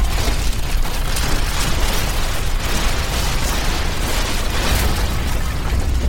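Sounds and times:
building collapsing with falling rubble: 0.0 - 6.0.

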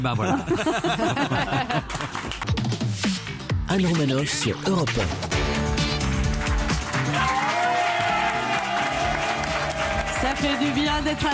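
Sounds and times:
laughter: 0.0 - 2.3
speech: 0.0 - 2.8, 3.7 - 5.6, 10.2 - 11.3
scattered clapping: 1.6 - 2.8, 6.0 - 11.3
crowd cheering and shouting: 7.0 - 11.3.

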